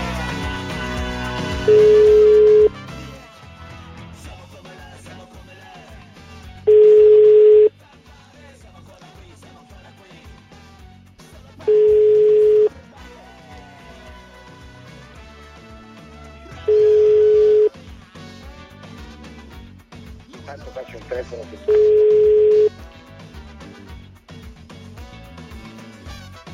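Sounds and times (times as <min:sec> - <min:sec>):
telephone ringing: 0:01.7 - 0:02.7, 0:06.7 - 0:07.7, 0:11.7 - 0:12.7, 0:16.7 - 0:17.7, 0:21.7 - 0:22.7.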